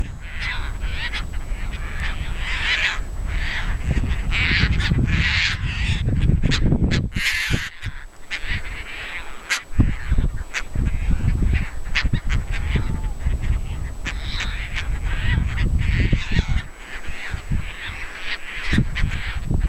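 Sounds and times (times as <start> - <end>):
Hydroprogne caspia calling: 0.0 - 19.6.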